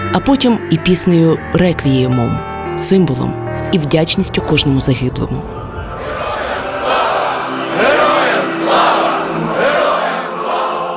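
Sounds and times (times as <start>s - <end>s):
speech: 0.1s - 6.3s
crowd chanting slogans: 5.5s - 10.9s.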